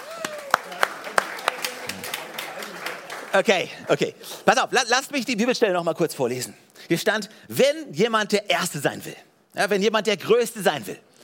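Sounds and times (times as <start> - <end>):
small audience clapping for volunteers: 0.0 - 4.1
speech: 3.3 - 11.1.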